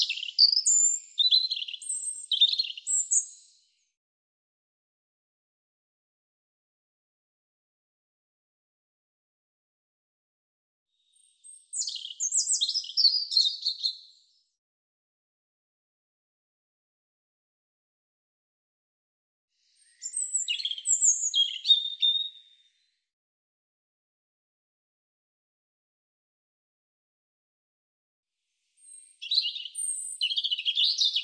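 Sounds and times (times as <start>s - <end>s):
European robin singing high phrases of slurred whistles and trills: 0.0s - 3.7s, 11.1s - 14.4s, 19.7s - 22.9s, 28.8s - 31.2s.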